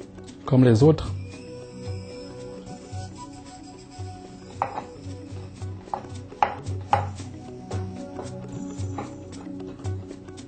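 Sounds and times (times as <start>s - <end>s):
speech: 0.5s - 1.2s
knife chopping ingredients into small pieces: 5.9s - 7.2s.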